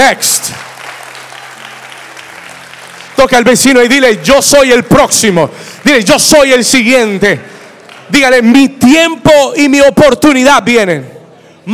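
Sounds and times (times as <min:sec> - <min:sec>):
speech: 0:00.0 - 0:00.8, 0:03.2 - 0:07.5, 0:08.1 - 0:11.7
audience applauding: 0:00.0 - 0:08.1.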